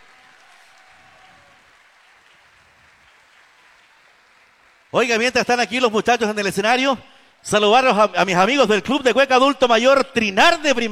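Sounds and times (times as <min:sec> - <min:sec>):
audience applause: 0:00.0 - 0:05.5
speech: 0:04.9 - 0:10.9.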